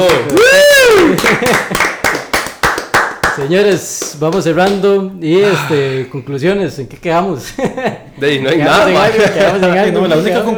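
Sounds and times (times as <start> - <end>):
vocal whoop: 0.0 - 1.3
speech: 0.0 - 1.9, 3.4 - 10.5
laughter: 0.0 - 2.2, 5.3 - 10.5
sharp hand claps: 0.0 - 5.1.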